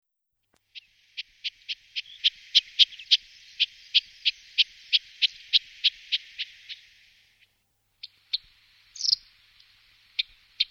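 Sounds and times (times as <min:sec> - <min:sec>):
marsh warbler singing varied chattering buzzy and whistled notes: 0:00.7 - 0:10.7.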